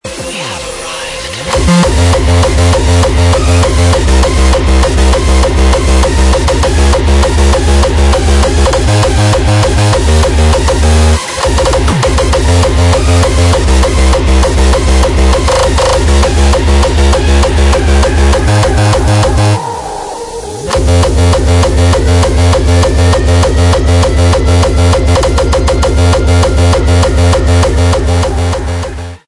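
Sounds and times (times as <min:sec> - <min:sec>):
frenchcore music: 0:00.0 - 0:19.8, 0:20.7 - 0:29.2.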